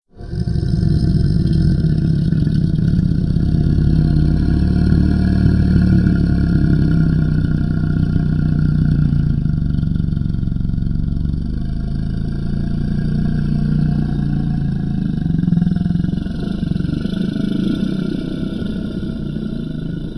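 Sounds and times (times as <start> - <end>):
monster low growl: 0.1 - 20.1.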